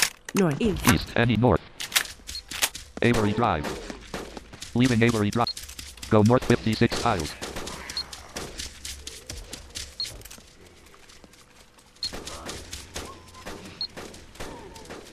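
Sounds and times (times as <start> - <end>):
speech: 0.3 - 1.8, 3.0 - 3.8, 4.8 - 5.4, 6.1 - 7.4
gunshots: 1.9 - 10.1, 12.0 - 15.1.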